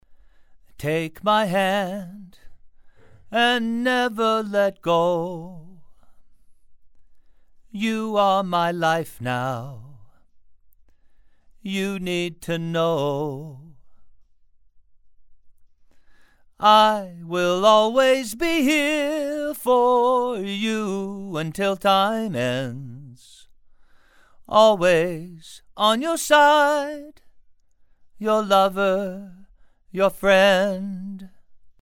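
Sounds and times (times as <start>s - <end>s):
male vocals: 0.6s - 2.6s, 3.2s - 6.1s, 7.7s - 10.2s, 11.6s - 14.0s, 16.5s - 23.5s, 24.4s - 27.3s, 28.2s - 31.4s.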